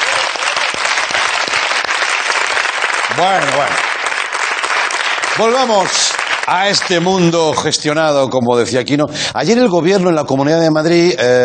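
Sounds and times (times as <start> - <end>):
audience applause: 0.0 - 7.7
speech: 3.2 - 3.9, 5.4 - 11.4.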